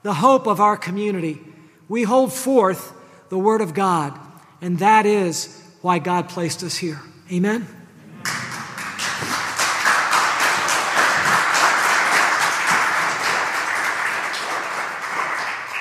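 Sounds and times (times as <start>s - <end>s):
speech: 0.0s - 8.4s
crowd applause: 8.0s - 15.7s.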